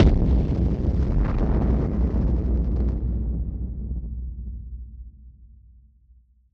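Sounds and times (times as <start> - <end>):
explosion hit: 0.0 - 4.0.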